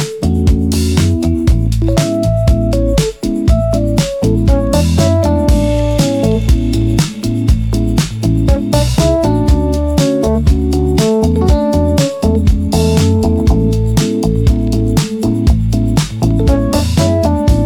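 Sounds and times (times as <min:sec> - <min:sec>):
lo-fi bossa nova music: 0:00.0 - 0:17.6.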